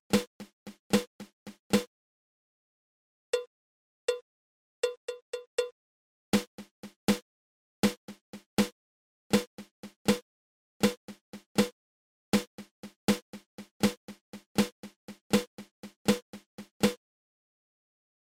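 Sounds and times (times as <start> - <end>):
flam accent drum rudiment: 0.1 - 1.9, 6.4 - 7.2, 7.8 - 8.7, 9.4 - 10.2, 10.8 - 11.7, 12.4 - 17.0.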